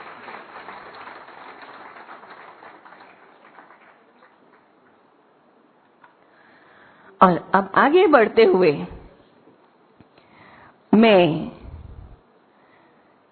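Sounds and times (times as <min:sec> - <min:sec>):
audience clapping to welcome a guest at a Hindi-language gathering: 0:00.0 - 0:05.1
speech: 0:07.2 - 0:09.0, 0:11.0 - 0:11.5.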